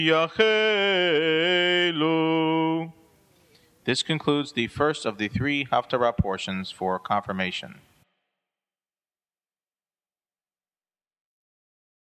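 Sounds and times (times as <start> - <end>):
person chanting the haftarah: 0.0 - 3.0, 3.8 - 7.8.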